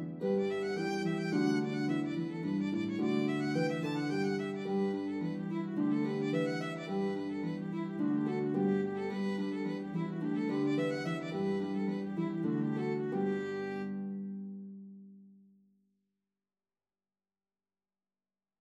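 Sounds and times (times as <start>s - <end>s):
violin playing a reel: 0.0s - 14.6s
harp playing a reel: 0.0s - 14.8s.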